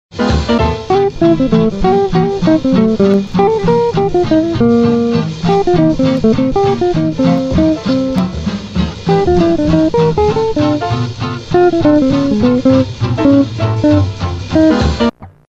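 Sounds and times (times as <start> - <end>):
blues music: 0.2 - 15.4.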